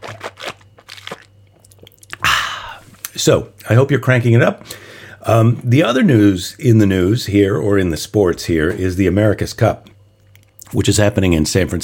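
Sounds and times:
crinkly handling noises: 0:00.0 - 0:02.2
person sipping water: 0:00.0 - 0:03.1
speech: 0:03.2 - 0:09.9, 0:10.7 - 0:11.8.

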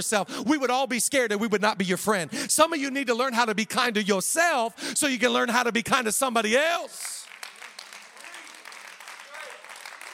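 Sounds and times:
speech: 0:00.0 - 0:07.2
audience clapping: 0:06.8 - 0:10.1.

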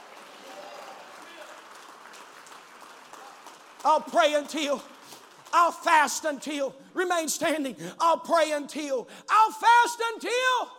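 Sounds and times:
audience clapping: 0:00.0 - 0:06.6
speech: 0:03.8 - 0:04.9, 0:05.5 - 0:10.7.

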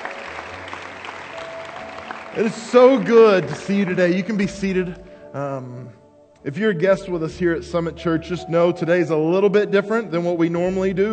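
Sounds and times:
audience applauding: 0:00.0 - 0:04.8
speech: 0:02.3 - 0:11.1.

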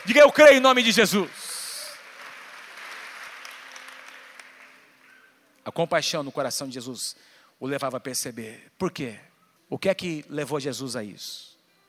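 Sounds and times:
speech: 0:00.0 - 0:01.4, 0:05.8 - 0:11.5
audience applause: 0:00.0 - 0:05.1.

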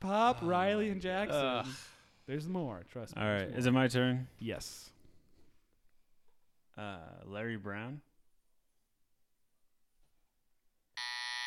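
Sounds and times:
speech: 0:00.0 - 0:05.0, 0:06.8 - 0:08.1
game buzzer: 0:11.0 - 0:11.4.

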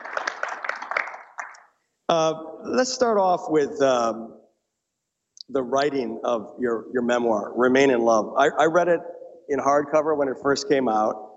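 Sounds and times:
audience applause: 0:00.0 - 0:01.6
speech: 0:02.1 - 0:04.4, 0:05.5 - 0:11.3.

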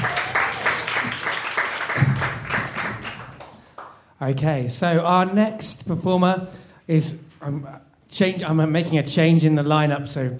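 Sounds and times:
crowd cheering: 0:00.0 - 0:03.6
crowd clapping rhythmically: 0:00.0 - 0:04.2
speech: 0:04.2 - 0:10.3.

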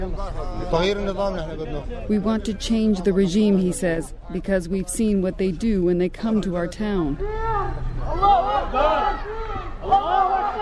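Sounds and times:
speech: 0:00.0 - 0:10.0
crowd of protesters shouting: 0:07.2 - 0:10.6.

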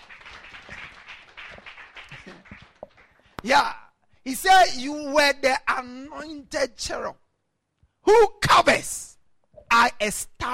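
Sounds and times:
audience clapping: 0:00.0 - 0:03.4
speech: 0:03.4 - 0:07.2, 0:08.1 - 0:09.1, 0:09.8 - 0:10.5.

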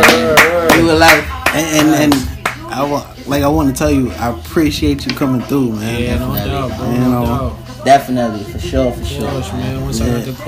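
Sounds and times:
hand clapping: 0:00.0 - 0:02.7
speech: 0:03.0 - 0:10.4.

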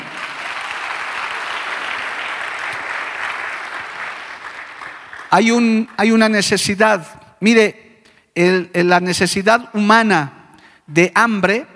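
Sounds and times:
audience applause: 0:00.0 - 0:05.4
speech: 0:05.3 - 0:07.8, 0:08.4 - 0:11.7.

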